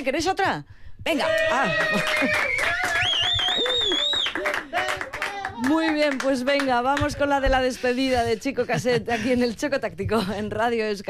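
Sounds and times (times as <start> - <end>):
speech: 0.0 - 2.9, 5.6 - 11.0
voices cheering: 1.2 - 6.2
audience clapping: 1.7 - 7.3
shrill whistles: 2.1 - 4.6.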